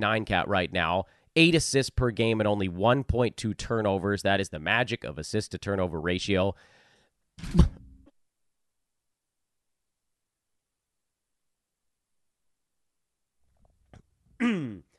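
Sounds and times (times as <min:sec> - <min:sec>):
speech: 0:00.0 - 0:06.8, 0:07.4 - 0:07.8
harsh cough: 0:14.4 - 0:14.8
brief throaty voiced sound: 0:14.4 - 0:14.9.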